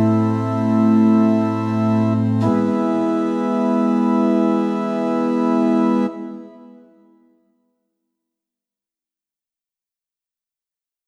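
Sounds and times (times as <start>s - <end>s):
organ tuned to pitch 440 in meantone temperament: 0.0s - 7.0s.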